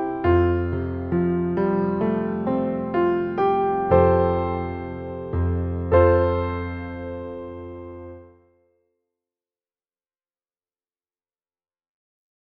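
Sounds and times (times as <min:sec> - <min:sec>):
solo piano: 0:00.0 - 0:08.6.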